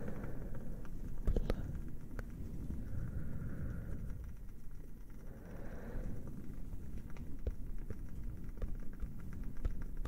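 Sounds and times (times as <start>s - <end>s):
fire crackling with pops: 0.0s - 10.0s.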